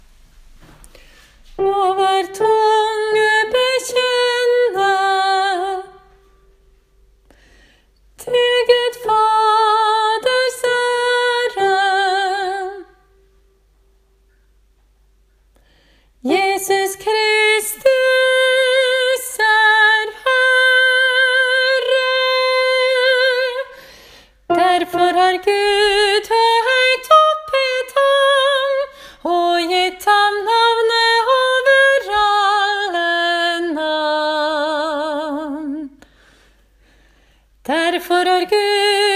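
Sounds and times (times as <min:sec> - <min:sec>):
soprano voice: 0:01.5 - 0:06.3, 0:08.2 - 0:13.2, 0:16.2 - 0:23.8, 0:24.5 - 0:36.0, 0:37.6 - 0:39.1.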